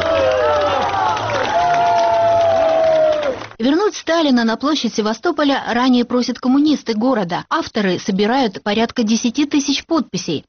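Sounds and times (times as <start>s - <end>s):
crowd applauding and cheering: 0.0s - 3.6s
speech: 4.0s - 10.4s.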